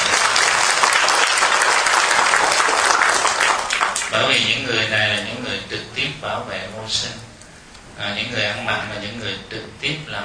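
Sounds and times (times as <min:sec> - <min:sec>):
audience applause: 0:00.0 - 0:04.2
speech: 0:04.2 - 0:07.3, 0:08.0 - 0:10.2.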